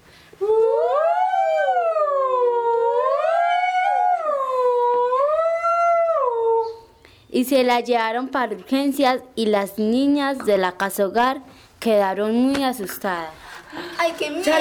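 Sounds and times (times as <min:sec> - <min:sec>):
voice imitating an arriving ambulance siren: 0:00.4 - 0:06.9
speech: 0:07.4 - 0:13.4, 0:14.0 - 0:14.6.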